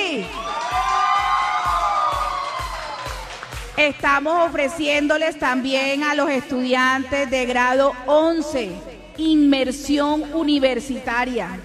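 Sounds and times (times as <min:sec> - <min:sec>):
students cheering: 0:00.2 - 0:03.6
speech: 0:03.8 - 0:11.6.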